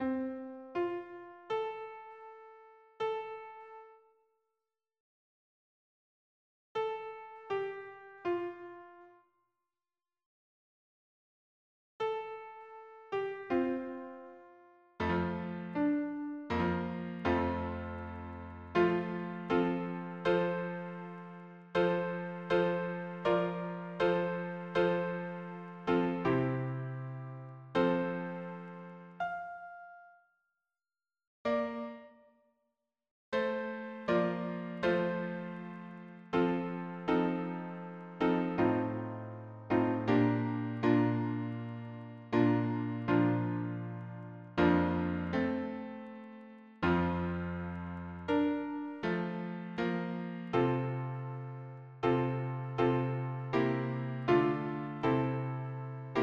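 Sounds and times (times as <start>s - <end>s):
piano harmony: 0.0s - 4.0s, 6.8s - 9.1s, 12.0s - 30.1s, 31.5s - 32.2s, 33.4s - 56.2s.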